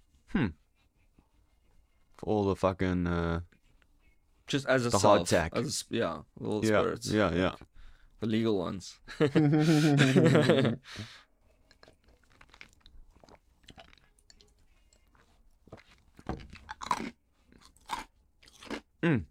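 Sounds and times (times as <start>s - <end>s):
speech: 0.3s - 0.6s, 2.2s - 3.5s, 4.5s - 11.2s, 19.0s - 19.2s
laughter: 9.1s - 10.9s
crunchy chewing of food: 11.6s - 19.0s.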